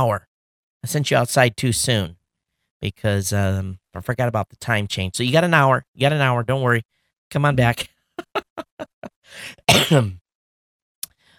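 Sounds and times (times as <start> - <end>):
speech: 0.0 - 2.2, 2.8 - 10.2
person coughing: 8.2 - 8.6, 9.6 - 10.2
laughter: 8.2 - 9.1.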